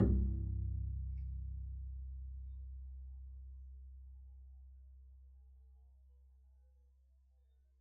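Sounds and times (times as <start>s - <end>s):
double bass pizzicato: 0.0s - 3.4s.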